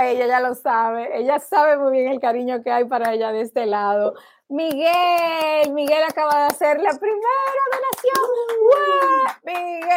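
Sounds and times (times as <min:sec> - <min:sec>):
speech: 0:00.0 - 0:09.9
hand clapping: 0:04.6 - 0:09.9.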